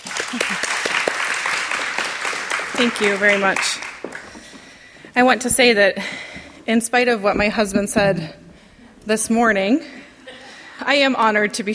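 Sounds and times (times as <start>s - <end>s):
audience applause welcoming a woman speaker at a church women's morning gathering: 0.0s - 4.8s
speech: 0.3s - 0.8s, 2.8s - 3.9s, 5.2s - 8.4s, 9.0s - 10.0s, 10.8s - 11.7s.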